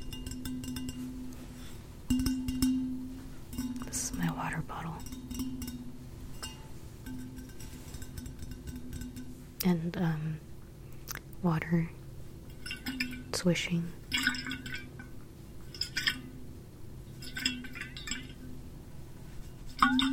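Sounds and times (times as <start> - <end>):
glassy tapping as an ASMR trigger: 0.0 - 9.8, 12.5 - 13.4, 17.2 - 18.6, 19.8 - 20.1
low steady hum: 0.0 - 20.1
speech: 9.7 - 10.5, 11.4 - 12.0, 13.4 - 14.0.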